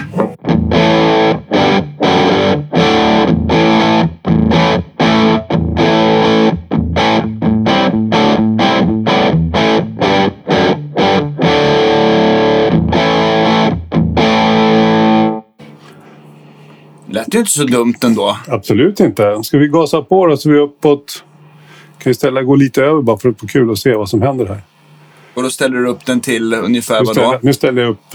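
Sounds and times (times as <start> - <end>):
faint amp hum: 0.0 - 0.4, 15.6 - 28.1
distorted electric guitar through a cold-biased EL34 tube amp: 0.0 - 15.1
speech: 17.3 - 21.3, 22.0 - 24.7, 25.4 - 28.1.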